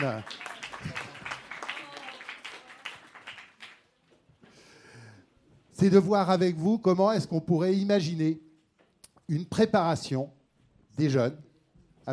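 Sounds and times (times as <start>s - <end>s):
speech: 0.0s - 1.0s, 5.8s - 8.4s, 9.3s - 10.4s, 11.0s - 12.1s
audience applause: 0.0s - 4.0s.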